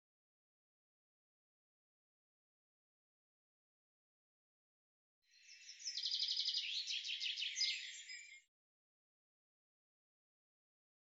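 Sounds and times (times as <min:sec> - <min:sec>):
bird trilling song: 0:05.3 - 0:08.5.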